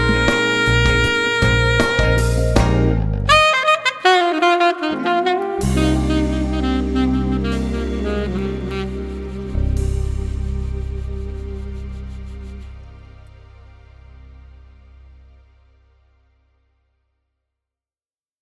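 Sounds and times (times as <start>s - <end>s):
alto sax solo: 0.0s - 13.2s.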